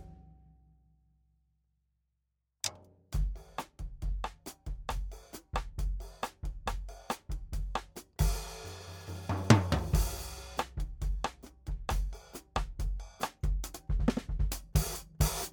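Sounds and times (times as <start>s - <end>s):
14-inch hi-hat cymbal: 3.2s - 13.8s, 14.8s - 15.5s.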